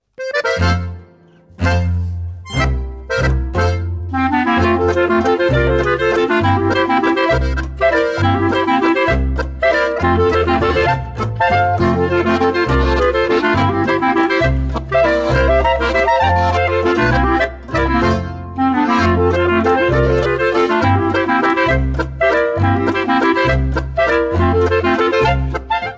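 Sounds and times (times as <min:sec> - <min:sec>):
clarinet half waltz: 0:00.2 - 0:25.9.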